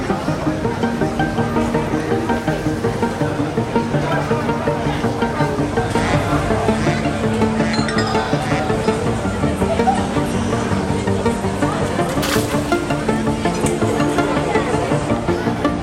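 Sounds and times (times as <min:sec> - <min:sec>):
beer garden crowd murmur at the Inselmühle in Untermenzing: 0:00.0 - 0:15.8
clinks and knocks: 0:07.8 - 0:08.5.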